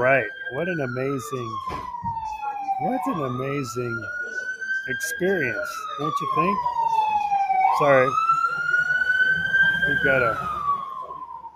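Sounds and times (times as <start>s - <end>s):
speech: 0.0s - 6.8s, 7.8s - 8.3s, 9.8s - 10.6s
emergency vehicle siren passing by a cafe: 0.0s - 11.5s.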